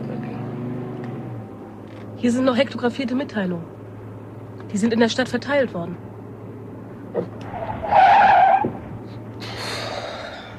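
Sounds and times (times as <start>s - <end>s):
speech: 2.2s - 3.8s, 4.7s - 6.0s, 7.1s - 8.1s
car skidding: 7.1s - 10.5s.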